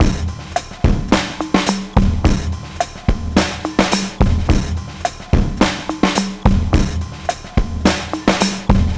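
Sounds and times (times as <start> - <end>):
breakbeat drum loop: 0.0 - 8.9.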